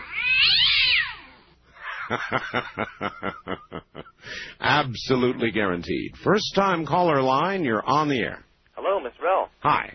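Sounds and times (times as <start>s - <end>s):
cat screeching in pain: 0.0s - 1.4s
laughter: 1.9s - 4.2s
speech: 2.1s - 9.9s.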